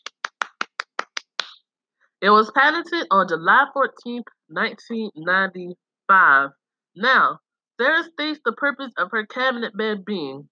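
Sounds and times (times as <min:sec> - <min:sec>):
hand clap: 0:00.0 - 0:01.6
speech: 0:02.2 - 0:10.4.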